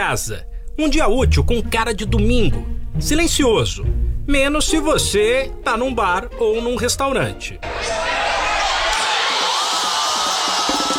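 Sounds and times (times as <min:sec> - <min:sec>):
speech: 0:00.0 - 0:08.0
football fans cheering a goal: 0:07.6 - 0:10.9.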